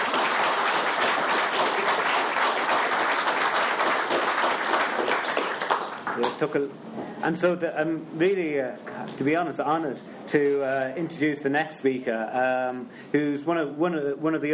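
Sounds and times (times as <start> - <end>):
audience applause: 0.0 - 6.4
speech: 6.4 - 14.5.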